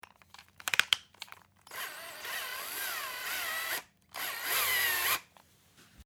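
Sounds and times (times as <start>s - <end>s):
cordless screwdriver at home: 0.7s - 5.3s.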